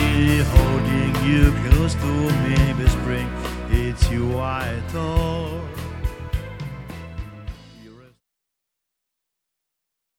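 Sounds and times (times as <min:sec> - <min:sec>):
rumba music: 0:00.0 - 0:08.0.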